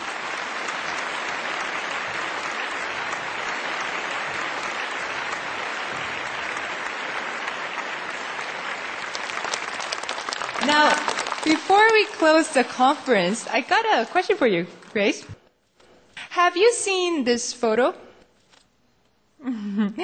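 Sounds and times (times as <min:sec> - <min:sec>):
audience applause: 0:00.0 - 0:14.3
speech: 0:11.5 - 0:15.3, 0:16.5 - 0:18.0, 0:19.4 - 0:20.0.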